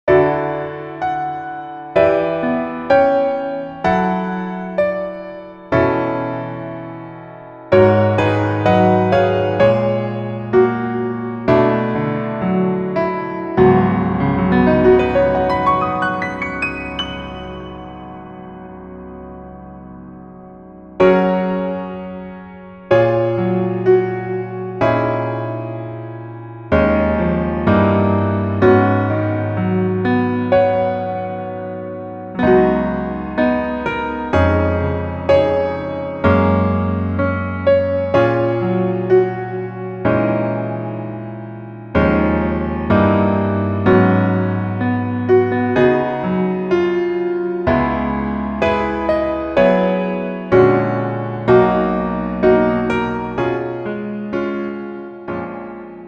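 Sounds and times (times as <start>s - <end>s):
piano version lowered by one key: 0.0s - 56.0s.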